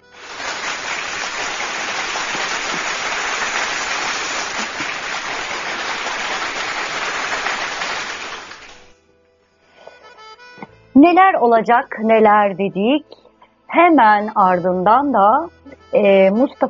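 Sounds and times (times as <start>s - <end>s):
applause: 0.0s - 8.9s
speech: 11.0s - 16.6s.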